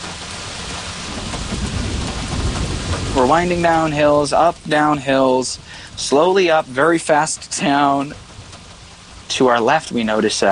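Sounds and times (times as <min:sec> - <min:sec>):
rain in a thunderstorm: 0:00.0 - 0:10.5
thunder in a thunderstorm: 0:01.0 - 0:04.4
speech: 0:03.2 - 0:08.2, 0:09.3 - 0:10.5.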